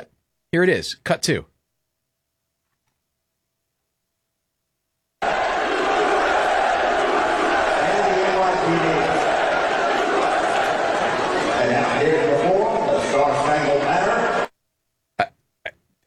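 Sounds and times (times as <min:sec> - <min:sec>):
speech: 0:00.5 - 0:01.5
crowd booing during national anthem: 0:05.2 - 0:14.5.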